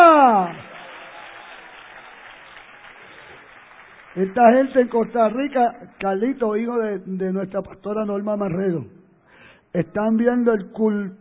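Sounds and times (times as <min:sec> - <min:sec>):
audience applause: 0:00.0 - 0:04.8
speech: 0:04.2 - 0:09.0, 0:09.7 - 0:11.1.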